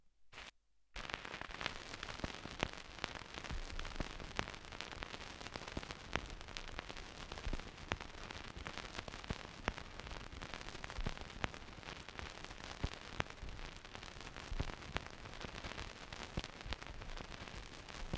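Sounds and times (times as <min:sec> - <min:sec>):
vinyl record crackle: 0:00.4 - 0:18.1.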